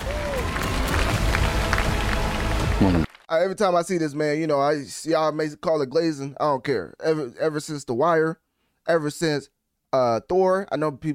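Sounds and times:
hand claps: 0:00.0 - 0:03.2
speech: 0:02.8 - 0:11.1.

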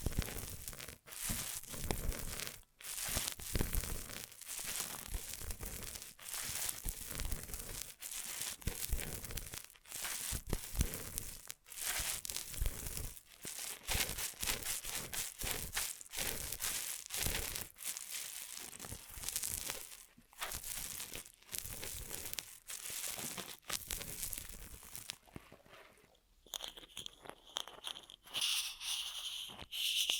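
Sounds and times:
ear massage crinkling and rubbing: 0:01.2 - 0:30.1
soft tapping and light scratching: 0:26.4 - 0:30.1.

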